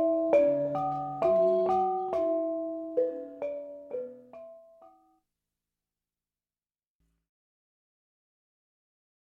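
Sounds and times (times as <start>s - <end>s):
bonang barung playing: 0.0s - 5.0s.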